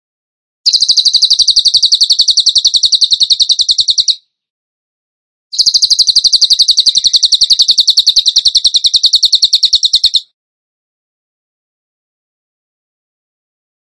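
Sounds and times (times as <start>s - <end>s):
bird trilling song: 0.7s - 4.3s, 5.5s - 10.4s.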